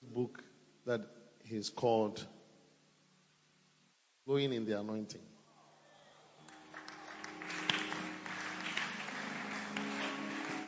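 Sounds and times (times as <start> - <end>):
speech: 0.2 - 2.4, 4.3 - 5.3
audience clapping: 6.4 - 10.6.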